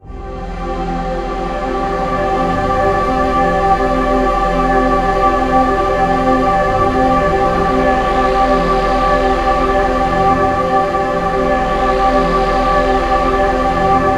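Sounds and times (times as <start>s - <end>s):
ethereal atmospheric soundtrack: 0.0s - 14.1s.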